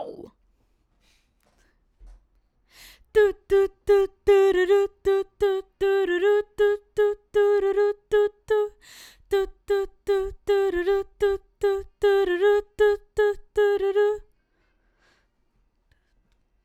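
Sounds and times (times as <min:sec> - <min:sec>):
background vocals: 0:03.0 - 0:14.3.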